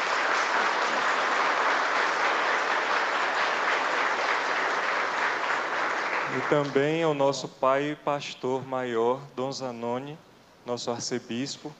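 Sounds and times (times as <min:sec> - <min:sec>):
audience applause: 0:00.0 - 0:06.9
speech: 0:06.4 - 0:11.7.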